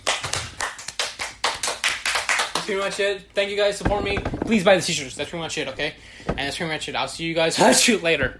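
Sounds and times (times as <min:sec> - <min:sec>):
hand clapping applause: 0:00.0 - 0:03.0
speech: 0:02.7 - 0:08.3.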